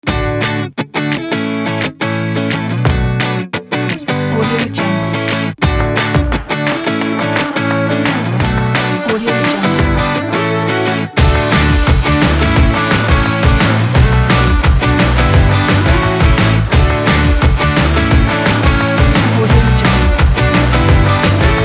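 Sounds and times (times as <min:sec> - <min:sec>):
happy pop rock music: 0:00.0 - 0:21.6.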